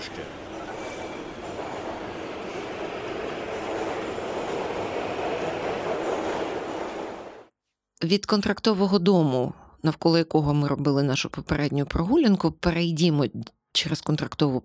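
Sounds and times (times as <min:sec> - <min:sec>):
metro train departing: 0:00.0 - 0:07.5
speech: 0:08.0 - 0:14.6.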